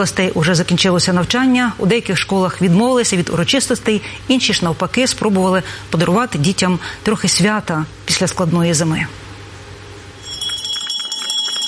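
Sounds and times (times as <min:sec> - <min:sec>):
speech: 0:00.0 - 0:09.2
school last bell ringing: 0:10.2 - 0:11.6.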